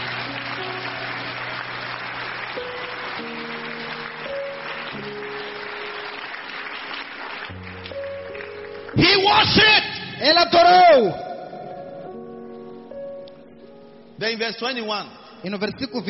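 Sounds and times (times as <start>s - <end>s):
audience applause: 0.0s - 9.5s
speech: 9.0s - 11.2s, 14.2s - 16.0s.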